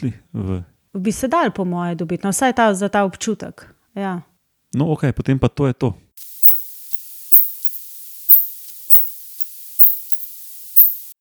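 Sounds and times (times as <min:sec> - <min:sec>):
speech: 0:00.0 - 0:06.0
constant thin hiss: 0:06.2 - 0:11.1
recording of bat echolocation calls: 0:06.2 - 0:11.1.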